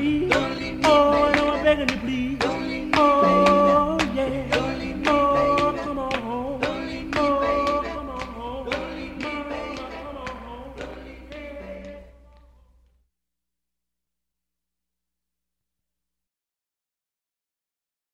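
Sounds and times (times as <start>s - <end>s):
doo-wop singing: 0.0s - 12.6s.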